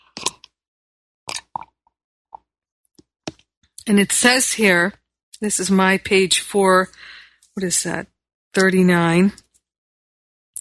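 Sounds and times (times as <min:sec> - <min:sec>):
person sipping mate tea: 0:00.0 - 0:00.6, 0:01.3 - 0:01.7
speech: 0:03.9 - 0:09.4.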